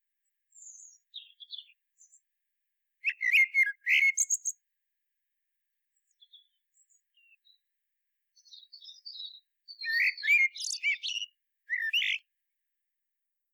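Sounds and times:
Common blackbird song: 0.4 - 2.3, 3.0 - 4.7, 5.9 - 12.3.

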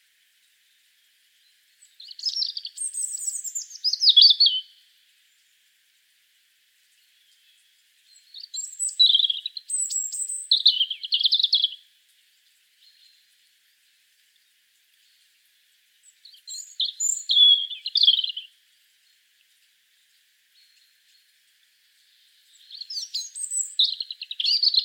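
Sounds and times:
European robin song: 1.4 - 5.6, 7.0 - 11.9, 16.0 - 18.6, 20.0 - 24.8.

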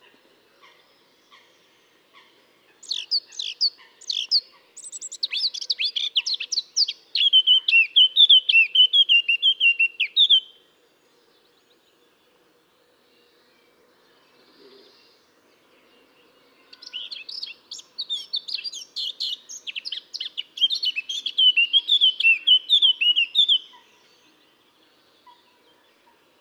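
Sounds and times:
Eurasian blackcap singing: 2.8 - 10.5, 16.7 - 23.8.

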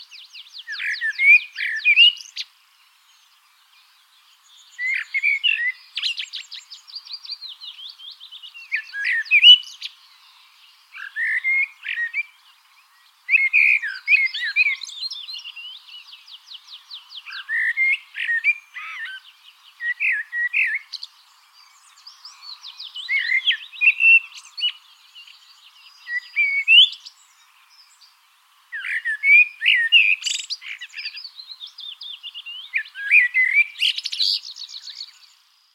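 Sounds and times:
common blackbird song: 0.0 - 35.7.

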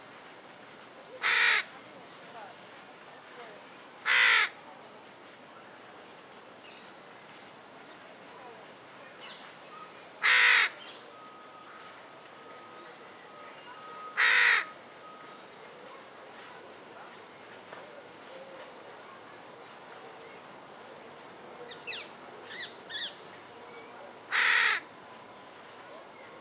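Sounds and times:
carrion crow Corvus corone cawing: 1.2 - 1.8, 4.1 - 4.6, 10.2 - 10.8, 14.2 - 14.8, 24.3 - 24.9.

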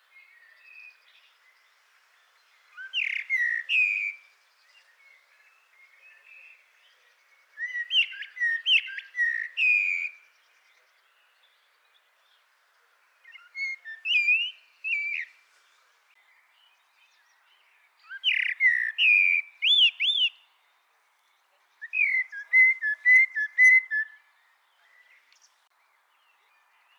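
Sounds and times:
common blackbird Turdus merula singing: 2.7 - 4.2, 4.8 - 10.3, 13.3 - 15.3, 18.0 - 20.5, 21.8 - 25.6.

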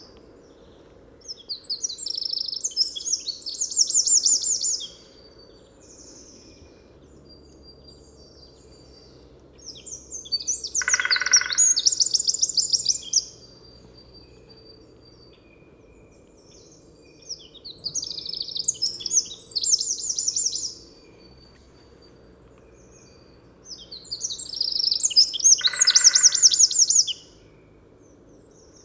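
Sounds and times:
Eurasian wren song: 0.0 - 28.8.

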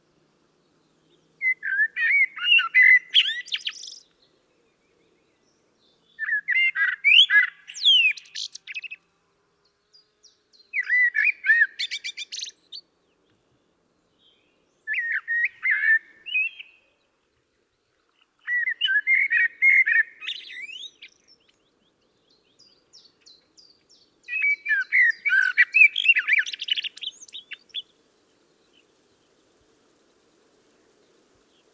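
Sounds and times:
common blackbird singing: 0.8 - 9.0, 9.9 - 12.8, 14.1 - 17.1, 18.4 - 28.0.

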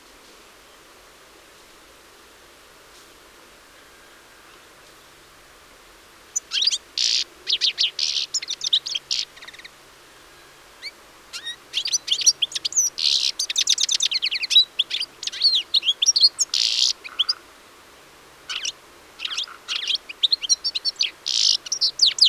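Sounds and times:
European goldfinch Carduelis carduelis twittering: 6.4 - 9.7, 11.4 - 17.4, 18.5 - 22.2.

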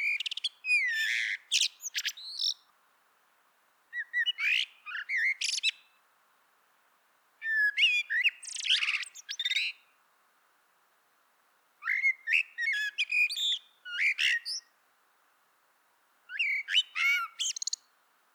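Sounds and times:
Common blackbird song: 0.0 - 2.7, 3.9 - 6.0, 7.4 - 9.9, 11.8 - 14.7, 16.3 - 17.9.

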